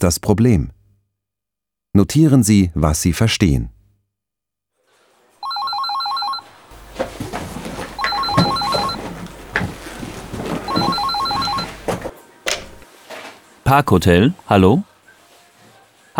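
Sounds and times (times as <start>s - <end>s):
speech: 0.0s - 0.8s, 2.0s - 3.8s, 13.7s - 14.9s
telephone ringing with warbling electronic trill: 5.4s - 12.8s.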